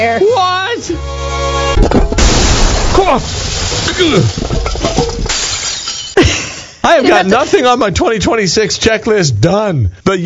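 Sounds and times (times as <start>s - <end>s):
speech: 0.0s - 1.2s, 3.0s - 5.2s, 7.0s - 10.2s
jazz band instruments being smashed: 1.7s - 6.2s.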